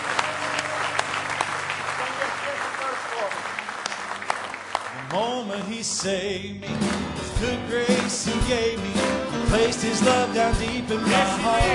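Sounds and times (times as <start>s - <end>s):
crowd voices and cheering: 0.0s - 5.3s
audience clapping hands: 0.0s - 7.2s, 7.8s - 9.1s
speech: 5.1s - 11.7s.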